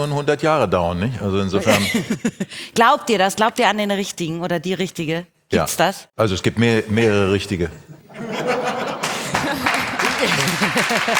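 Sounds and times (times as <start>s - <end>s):
speech: 0.0s - 8.6s, 10.2s - 11.1s
audience laughing: 8.0s - 11.1s
audience applause, mostly men clapping: 8.7s - 11.1s.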